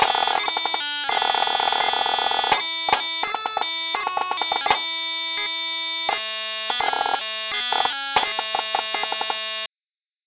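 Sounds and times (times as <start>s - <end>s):
pipes: 0.0s - 9.7s.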